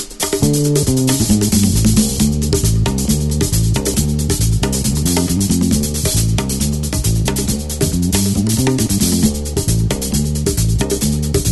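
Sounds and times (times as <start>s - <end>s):
disco music: 0.4s - 3.8s, 4.3s - 11.5s.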